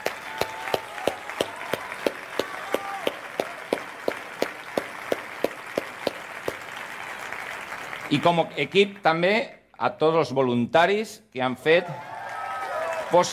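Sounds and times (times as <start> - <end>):
audience applause: 0.0 - 8.9, 11.8 - 13.3
speech: 8.1 - 12.1, 13.1 - 13.3.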